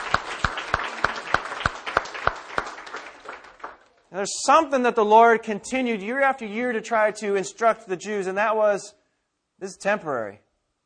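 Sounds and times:
audience applause: 0:00.0 - 0:04.0
speech: 0:04.1 - 0:09.0, 0:09.6 - 0:10.4.

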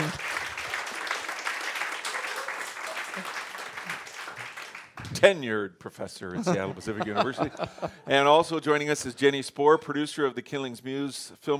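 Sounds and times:
audience applause: 0:00.0 - 0:05.2
speech: 0:05.2 - 0:11.5
laughter: 0:06.3 - 0:08.1.

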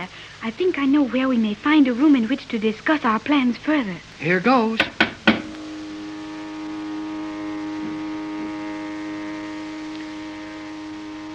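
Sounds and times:
speech: 0:00.0 - 0:05.0
noisy elevator motor humming with tonal whine: 0:00.0 - 0:11.3
brief thump: 0:04.8 - 0:05.5.

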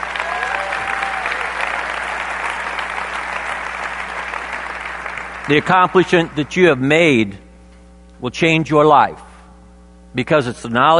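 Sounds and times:
audience applause: 0:00.0 - 0:06.6
speech: 0:05.5 - 0:07.4, 0:08.2 - 0:09.3, 0:10.1 - 0:10.9.

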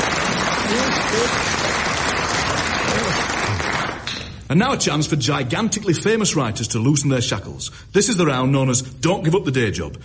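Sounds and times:
studio audience applauding at a comedy panel game: 0:00.0 - 0:04.1
speech: 0:00.7 - 0:01.7, 0:04.5 - 0:10.0.

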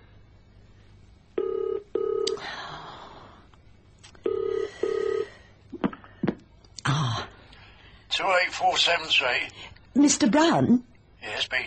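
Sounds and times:
telephone ringing: 0:01.4 - 0:02.4, 0:04.2 - 0:05.4
speech: 0:08.2 - 0:11.6.

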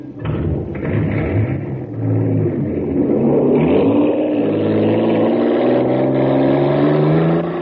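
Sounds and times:
supercharged race car engine accelerating hard: 0:00.2 - 0:07.6.

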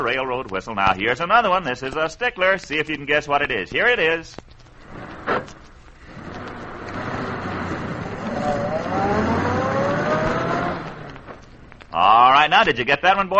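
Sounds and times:
speech: 0:00.0 - 0:04.5, 0:12.0 - 0:13.3
automobile starting up and driving off: 0:04.8 - 0:11.8.

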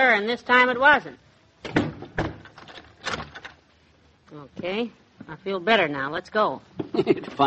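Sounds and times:
speech: 0:00.0 - 0:01.8, 0:04.3 - 0:07.4
front door being checked and locked: 0:01.7 - 0:03.6.

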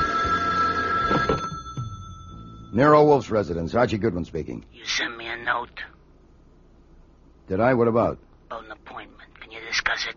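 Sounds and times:
telephone ringing: 0:00.0 - 0:03.5
speech: 0:02.8 - 0:06.0, 0:07.5 - 0:10.1.

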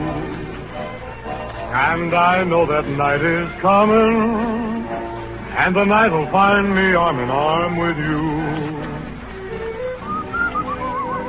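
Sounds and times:
speech: 0:01.7 - 0:04.7, 0:05.6 - 0:08.8
person whistling a melody: 0:09.8 - 0:11.2.

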